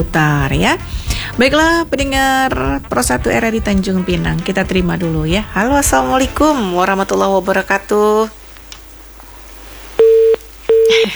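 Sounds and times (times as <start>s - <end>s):
speech: 0.0s - 8.4s, 11.0s - 11.1s
telephone busy tone beeps after a call is cut off: 10.0s - 11.0s.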